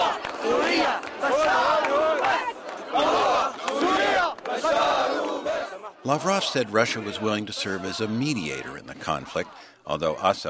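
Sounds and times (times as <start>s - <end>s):
crowd cheering and chanting: 0.0s - 10.3s
speech: 6.1s - 10.4s.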